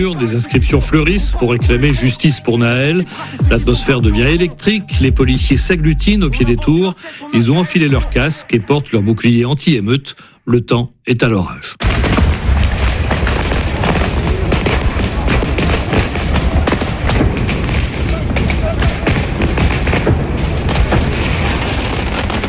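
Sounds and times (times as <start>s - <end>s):
speech: 0.0s - 12.1s
mortar firework shots: 11.8s - 22.4s.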